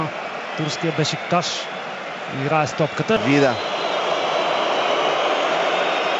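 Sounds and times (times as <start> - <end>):
stadium crowd loudly booing and whistling: 0.0 - 6.1
speech: 0.6 - 3.7.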